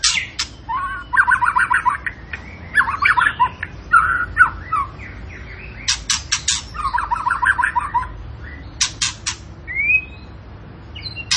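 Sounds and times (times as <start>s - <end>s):
zebra finch singing: 0.0s - 11.3s.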